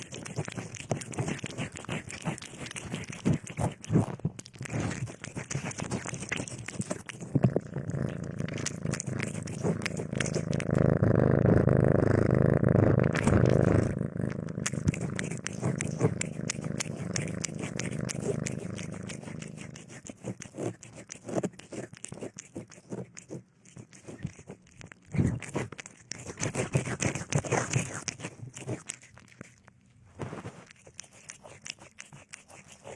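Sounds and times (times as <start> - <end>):
cat purring: 0.0 - 29.6.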